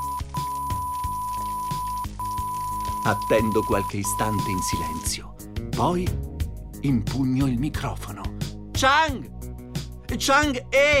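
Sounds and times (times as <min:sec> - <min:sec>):
radio crackle: 0:00.0 - 0:05.0
speech: 0:03.0 - 0:08.2, 0:08.8 - 0:09.4, 0:10.1 - 0:10.9.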